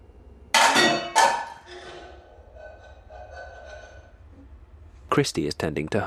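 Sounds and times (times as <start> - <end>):
metal pan falling from a wooden rack: 0.6 - 4.1
speech: 5.2 - 6.0.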